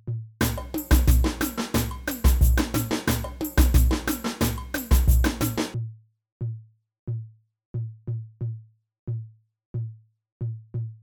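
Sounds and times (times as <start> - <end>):
samba band playing: 0.4 - 5.8
surdo drum in samba: 0.4 - 5.8.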